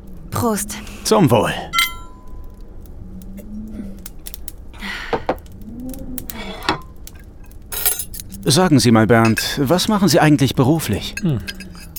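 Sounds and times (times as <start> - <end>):
speech: 0.4 - 1.8, 8.5 - 11.6
cutlery and dishes clinking during a meal: 1.8 - 2.4, 6.6 - 8.5, 9.2 - 10.2, 10.8 - 11.9.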